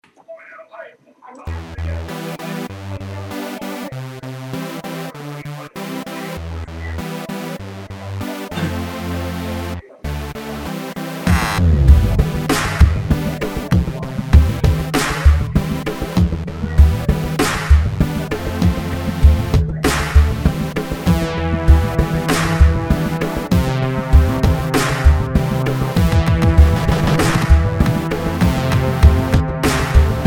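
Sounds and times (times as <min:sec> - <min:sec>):
techno music: 0:01.5 - 0:30.2.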